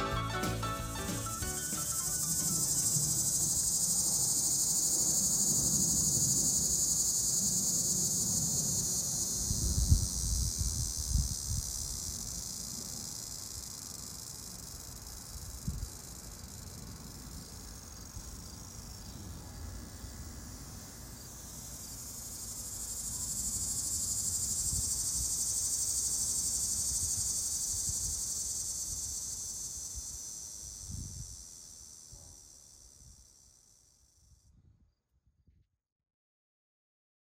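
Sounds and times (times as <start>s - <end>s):
low wind gusts: 0.8s - 12.9s, 15.2s - 25.4s, 26.8s - 33.2s
cicada buzzing: 0.9s - 19.2s, 19.9s - 34.1s.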